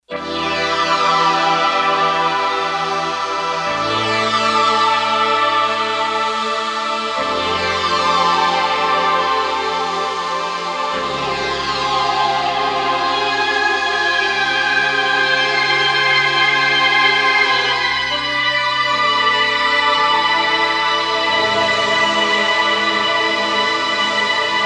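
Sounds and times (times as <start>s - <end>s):
synth: 0.1s - 24.6s.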